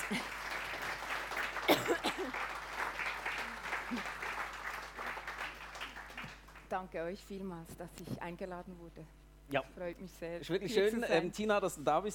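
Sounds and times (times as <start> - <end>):
audience applauding warmly: 0.0 - 6.7
speech: 6.8 - 12.1.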